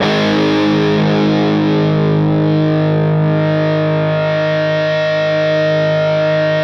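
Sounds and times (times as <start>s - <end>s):
fuzz guitar chord with vibrato: 0.0s - 6.6s.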